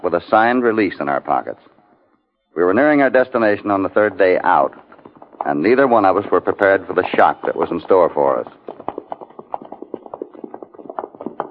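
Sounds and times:
speech: 0:00.1 - 0:01.7, 0:02.6 - 0:04.8, 0:05.4 - 0:08.8
horses' hooves clopping on the road: 0:02.8 - 0:11.4.

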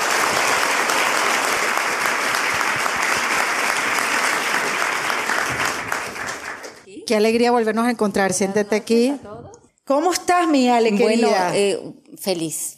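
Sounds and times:
audience applause: 0:00.0 - 0:06.9
speech: 0:07.1 - 0:09.3, 0:09.9 - 0:12.7.

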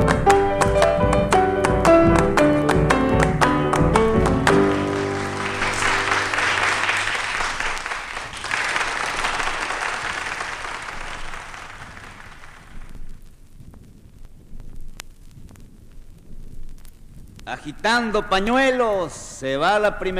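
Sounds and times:
crowd clapping along: 0:00.0 - 0:13.1
speech: 0:17.6 - 0:20.1.

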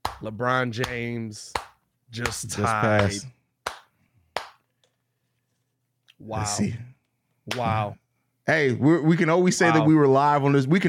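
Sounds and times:
single hand clap: 0:00.0 - 0:04.6
speech: 0:00.2 - 0:03.4, 0:06.2 - 0:10.8.

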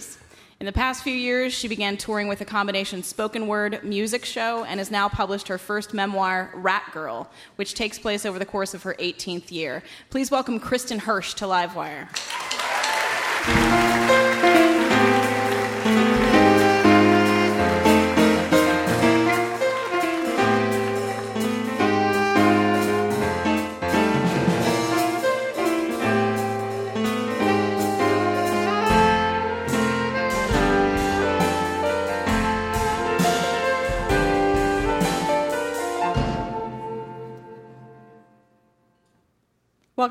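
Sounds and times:
speech: 0:00.0 - 0:12.4
instrumental theme tune: 0:12.6 - 0:38.8.

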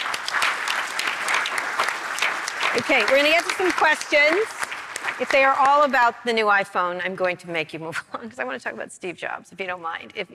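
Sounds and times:
audience applause: 0:00.0 - 0:06.1
speech: 0:02.8 - 0:04.6, 0:05.2 - 0:10.3.

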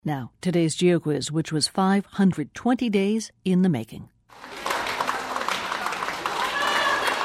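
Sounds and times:
speech: 0:00.0 - 0:04.5
crowd in Moscow cheering and clapping as a Mars-simulation crew emerges: 0:04.3 - 0:07.2.

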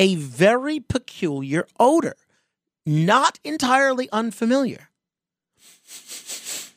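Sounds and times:
speech: 0:00.0 - 0:02.2, 0:02.8 - 0:04.9
person sniffing a sleep sack: 0:05.6 - 0:06.7.

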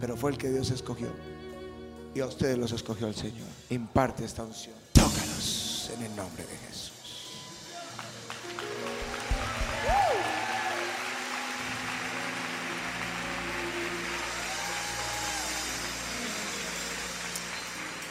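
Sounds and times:
speech: 0:00.0 - 0:01.4, 0:02.1 - 0:05.3, 0:05.9 - 0:07.0
audience applauding: 0:07.2 - 0:18.1.

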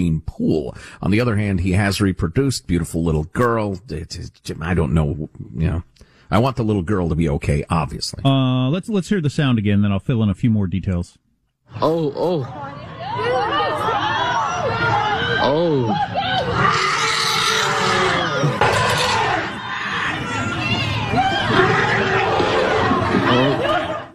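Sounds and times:
speech: 0:00.0 - 0:12.9, 0:14.8 - 0:16.9
crowd of people screaming and shouting: 0:12.5 - 0:24.1.

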